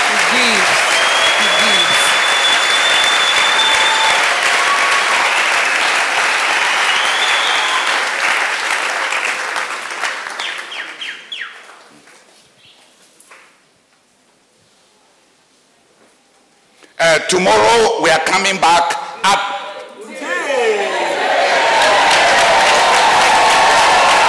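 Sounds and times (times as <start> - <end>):
audience applause: 0.0 - 11.1, 21.2 - 24.2
speech: 17.3 - 19.5.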